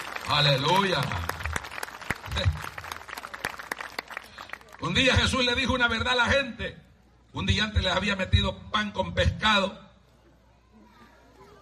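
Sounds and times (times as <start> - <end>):
audience applause: 0.0 - 4.8
speech: 0.3 - 1.3, 2.3 - 2.8, 4.8 - 9.8.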